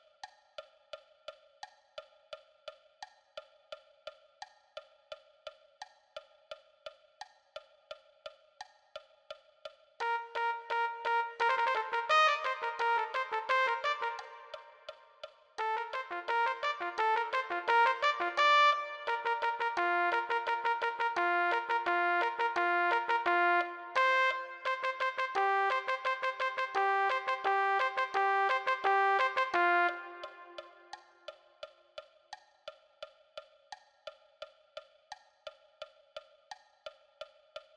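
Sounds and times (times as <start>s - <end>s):
trumpet: 10.0s - 31.1s.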